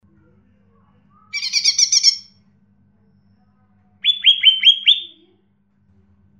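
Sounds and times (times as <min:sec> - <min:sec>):
bird song with buzzy rattle and whistled notes: 0:01.2 - 0:02.3, 0:04.0 - 0:05.4.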